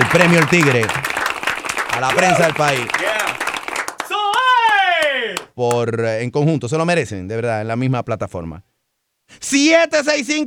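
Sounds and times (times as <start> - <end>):
scattered hand claps from an audience: 0.0 - 5.9
speech: 0.1 - 1.0, 2.0 - 3.1, 5.3 - 8.7, 9.3 - 10.4
loud sustained drawn-out cheer: 2.0 - 3.4, 4.0 - 5.5.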